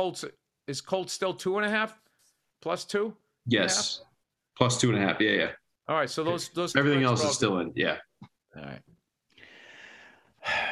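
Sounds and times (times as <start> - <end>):
speech: 0.0 - 2.0, 2.6 - 8.9
deep breath: 9.3 - 10.7.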